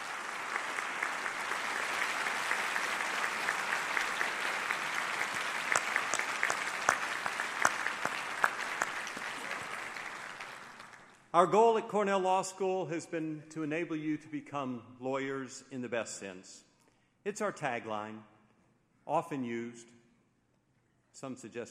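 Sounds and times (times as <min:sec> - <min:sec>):
audience applause: 0:00.0 - 0:11.2
speech: 0:11.4 - 0:18.3, 0:19.1 - 0:20.0, 0:21.2 - 0:21.7.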